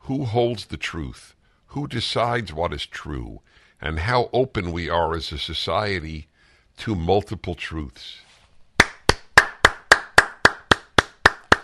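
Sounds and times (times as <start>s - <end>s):
speech: 0.1s - 8.3s
single person clapping hands: 8.8s - 11.6s.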